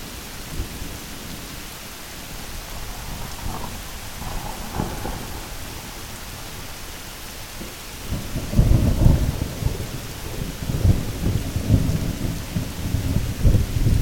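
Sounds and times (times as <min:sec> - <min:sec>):
midnight rain hissing: 0:00.0 - 0:14.0
low thunder rumbling: 0:02.8 - 0:06.6, 0:07.6 - 0:14.0.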